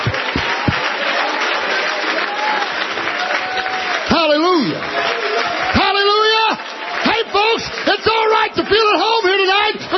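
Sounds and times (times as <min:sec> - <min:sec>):
audience clapping hands: 0:00.0 - 0:09.9.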